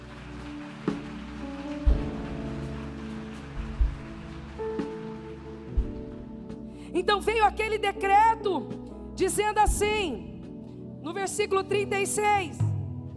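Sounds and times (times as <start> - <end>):
audience applause: 0.0 - 6.2
speech: 7.0 - 10.3, 11.0 - 12.6.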